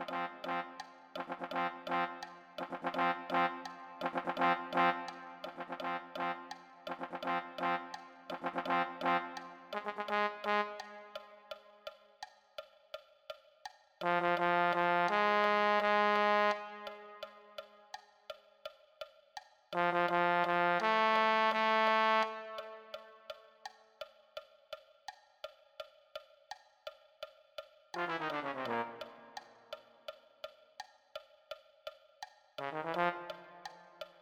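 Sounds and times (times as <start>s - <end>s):
low brass: 0.0s - 11.7s, 14.0s - 17.8s, 19.8s - 23.4s, 28.0s - 29.8s, 32.6s - 34.1s.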